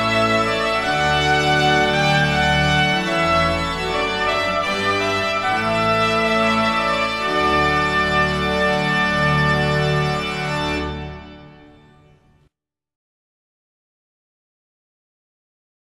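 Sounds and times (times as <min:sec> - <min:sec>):
trumpet piece: 0:00.0 - 0:12.3.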